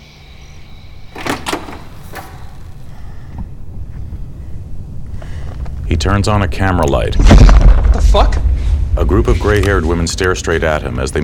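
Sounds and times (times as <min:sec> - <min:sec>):
garage door being pulled open: 0:01.0 - 0:03.4
low rumble: 0:02.5 - 0:10.6
speech: 0:05.9 - 0:08.4, 0:09.0 - 0:11.2.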